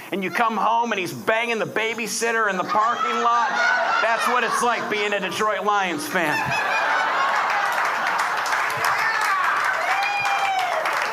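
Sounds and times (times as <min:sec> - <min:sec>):
speech: 0:00.1 - 0:07.0
laughter: 0:02.8 - 0:09.7
audience applause: 0:06.4 - 0:11.1.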